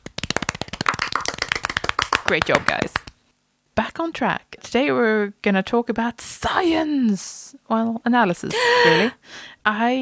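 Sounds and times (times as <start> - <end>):
small round of applause: 0.0 - 3.1
speech: 2.3 - 3.0, 3.8 - 9.9.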